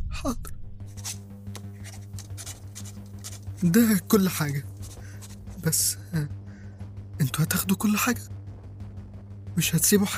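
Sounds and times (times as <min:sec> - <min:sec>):
low steady hum: 0:00.0 - 0:10.1
speech: 0:00.2 - 0:01.2, 0:03.6 - 0:04.7, 0:05.6 - 0:06.4, 0:07.2 - 0:08.4, 0:09.6 - 0:10.1
pen scratching on paper writing Swiss bank account numbers: 0:00.9 - 0:05.7.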